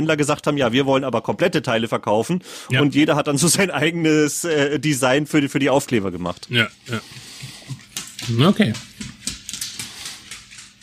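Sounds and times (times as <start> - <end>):
speech: 0.0 - 7.3, 8.3 - 9.1
dog's claws clacking on the floor: 7.4 - 10.8.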